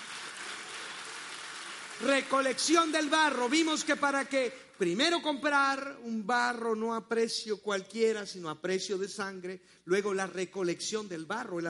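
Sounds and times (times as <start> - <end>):
audience applause: 0.0 - 4.1
speech: 2.0 - 11.6.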